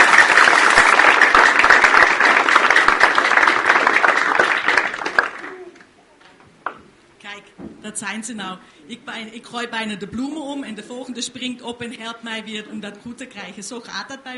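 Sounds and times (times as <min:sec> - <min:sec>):
applause: 0:00.0 - 0:05.9
speech: 0:08.0 - 0:14.3.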